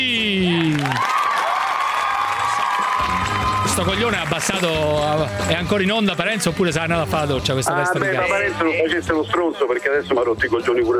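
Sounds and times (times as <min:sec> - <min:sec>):
cheering: 0:00.0 - 0:06.4
crowd applause: 0:00.0 - 0:06.8
speech: 0:03.8 - 0:10.9.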